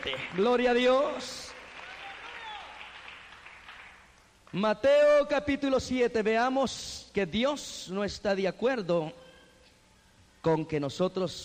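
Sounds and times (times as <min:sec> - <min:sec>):
speech: 0:00.0 - 0:01.5, 0:04.5 - 0:09.2, 0:10.4 - 0:11.4
audience applauding: 0:00.0 - 0:04.2.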